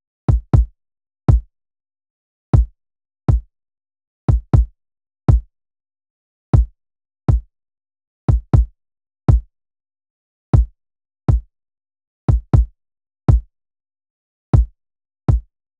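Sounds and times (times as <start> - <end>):
kick drum: 0.3 - 1.5, 2.6 - 3.5, 4.3 - 4.7, 5.3 - 5.5, 6.6 - 7.5, 8.3 - 8.7, 9.3 - 9.5, 10.6 - 11.5, 12.3 - 12.7, 14.6 - 15.5.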